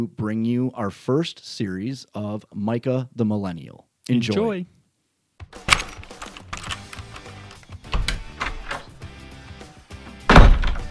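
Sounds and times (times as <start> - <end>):
speech: 0.0 - 4.8
front door opening and closing: 5.7 - 9.0, 10.3 - 10.8.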